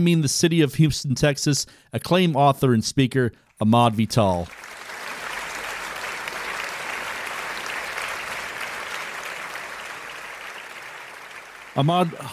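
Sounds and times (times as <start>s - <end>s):
speech: 0.0s - 4.8s, 11.8s - 12.3s
studio audience applause welcoming a talk show guest: 4.4s - 12.3s.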